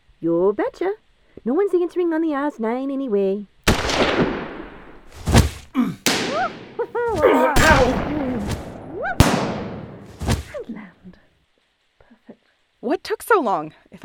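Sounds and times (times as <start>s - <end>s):
speech: 0.2s - 4.2s, 12.8s - 14.0s
gunfire: 3.7s - 10.6s.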